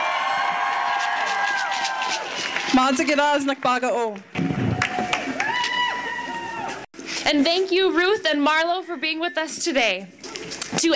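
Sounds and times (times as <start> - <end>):
rally audience cheering and whooping for the water protectors: 0.0 - 3.3, 4.4 - 6.9
speech: 2.8 - 4.4, 7.3 - 10.9.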